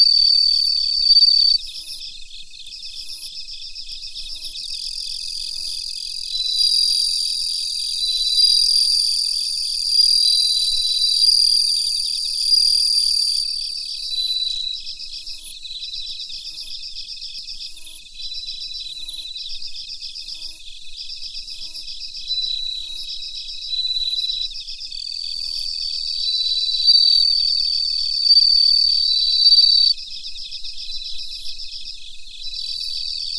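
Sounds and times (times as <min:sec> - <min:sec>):
bell cricket singing: 0:00.0 - 0:02.0, 0:04.1 - 0:15.4, 0:23.7 - 0:30.0, 0:32.4 - 0:33.3
insect chorus trilling: 0:00.0 - 0:33.3.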